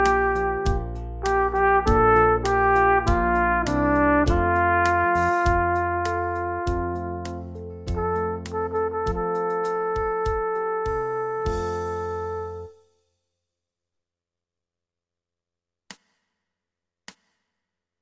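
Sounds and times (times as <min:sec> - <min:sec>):
blues song: 0:00.0 - 0:12.7.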